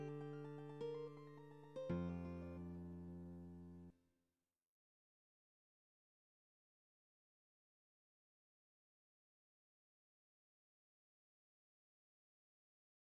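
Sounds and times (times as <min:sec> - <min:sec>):
guitar playing divisions: 0:00.0 - 0:02.9.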